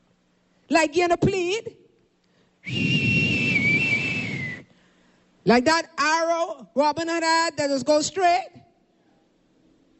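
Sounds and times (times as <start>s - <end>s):
speech: 0.7s - 1.8s, 2.6s - 3.0s, 5.5s - 8.6s
long high whistle: 2.6s - 4.8s.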